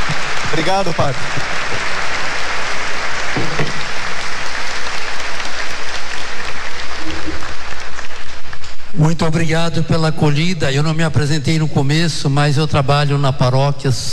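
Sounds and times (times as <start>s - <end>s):
applause: 0.0s - 9.0s
speech: 0.5s - 1.7s, 9.0s - 14.1s.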